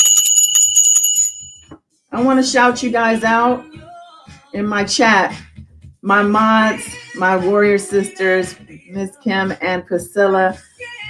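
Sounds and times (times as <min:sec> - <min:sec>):
bells ringing: 0:00.0 - 0:01.7
speech: 0:02.2 - 0:03.8, 0:04.5 - 0:10.7.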